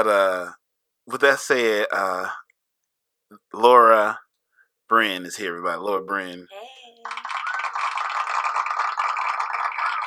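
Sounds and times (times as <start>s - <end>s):
speech: 0.0s - 2.4s, 3.3s - 4.2s, 4.9s - 7.4s
audience applause: 6.8s - 10.0s.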